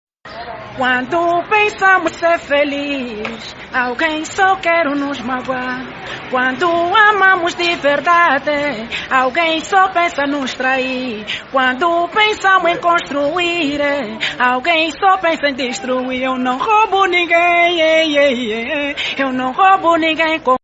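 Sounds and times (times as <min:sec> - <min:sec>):
Angolan person singing: 0:00.8 - 0:20.6.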